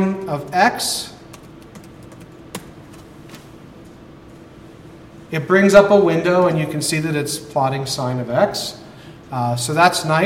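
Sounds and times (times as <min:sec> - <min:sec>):
speech: 0:00.0 - 0:01.1, 0:05.3 - 0:10.2
steady hum: 0:00.0 - 0:10.2
computer keyboard typing a plot command into a graphing program: 0:01.3 - 0:03.4.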